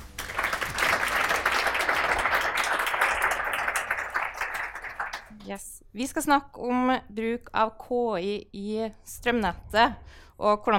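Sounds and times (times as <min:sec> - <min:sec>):
audience applause: 0:00.0 - 0:05.4
speech: 0:05.5 - 0:10.7.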